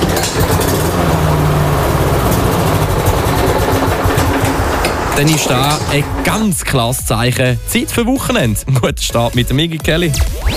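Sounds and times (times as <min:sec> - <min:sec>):
lawnmower engine sputtering: 0:00.0 - 0:07.4
speech: 0:05.2 - 0:10.5.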